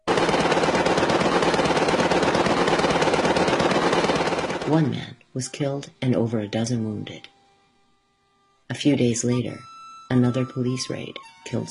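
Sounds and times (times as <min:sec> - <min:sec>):
sustained machine gun fire: 0:00.0 - 0:04.8
speech: 0:04.7 - 0:07.3, 0:08.7 - 0:11.6.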